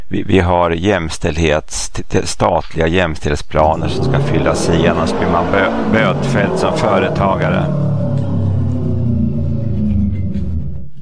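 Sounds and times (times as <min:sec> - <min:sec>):
speech: 0:00.1 - 0:08.0
new car engine rumbling during a test drive on a street: 0:03.5 - 0:11.0.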